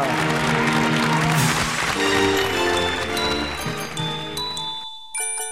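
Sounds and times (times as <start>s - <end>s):
audience applause: 0.0s - 4.8s.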